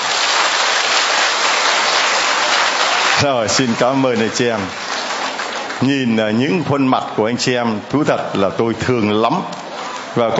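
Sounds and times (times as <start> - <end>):
loud applause from a large audience: 0.0 - 7.1
speech: 3.2 - 4.8, 5.8 - 10.3.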